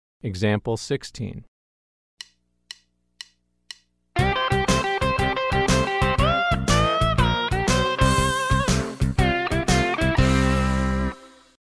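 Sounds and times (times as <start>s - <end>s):
country rock music: 4.2s - 11.5s.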